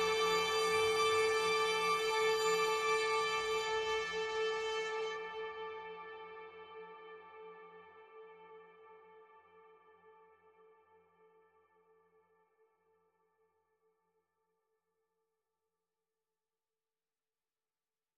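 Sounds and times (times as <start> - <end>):
strings: 0.0 - 8.3.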